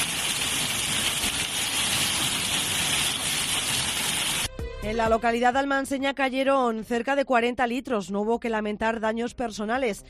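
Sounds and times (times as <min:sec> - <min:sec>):
floodwater rushing down a street: 0:00.0 - 0:04.5
speech: 0:04.9 - 0:10.0.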